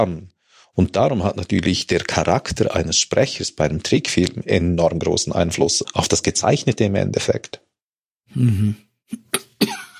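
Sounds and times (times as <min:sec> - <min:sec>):
speech: 0:00.0 - 0:07.7, 0:08.3 - 0:09.4
man coughing from sore throat after acrid air at a landfill: 0:08.5 - 0:09.9.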